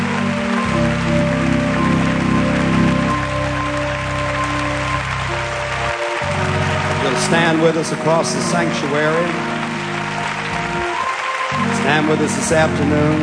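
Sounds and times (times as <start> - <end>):
audience hand clap applause: 0.0 - 13.2
speech: 7.3 - 9.5, 11.9 - 13.2.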